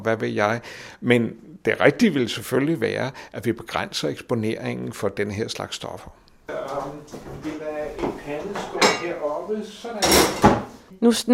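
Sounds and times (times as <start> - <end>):
speech: 0.0 - 8.6, 9.5 - 11.3
metal frying pan with non-stick coating handled in a kitchen: 8.6 - 9.3.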